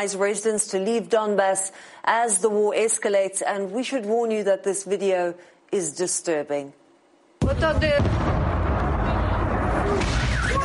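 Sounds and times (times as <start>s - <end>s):
speech: 0.0s - 6.8s, 7.4s - 8.4s
missile strike explosion at Kramatorsk railway station: 7.4s - 10.6s.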